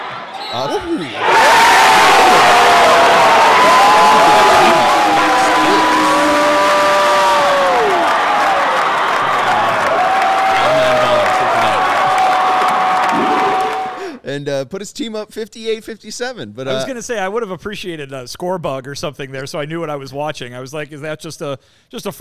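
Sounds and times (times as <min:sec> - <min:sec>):
crowd cheering at a high school basketball game: 0:00.0 - 0:14.2
speech: 0:00.5 - 0:04.8, 0:14.3 - 0:22.1
people shouting and whooping at a high school basketball game: 0:01.1 - 0:14.1.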